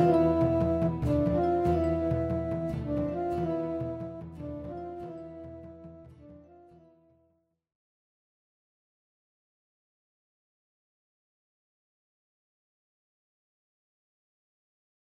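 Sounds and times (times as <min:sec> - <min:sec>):
instrumental music: 0:00.0 - 0:07.4.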